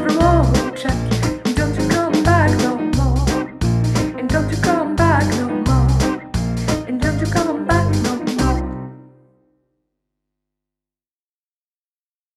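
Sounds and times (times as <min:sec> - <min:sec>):
vocals: 0:00.0 - 0:09.0.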